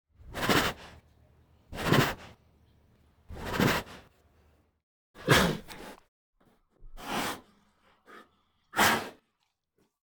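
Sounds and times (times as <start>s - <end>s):
tiger breathing: 0.2s - 4.6s, 6.8s - 9.3s.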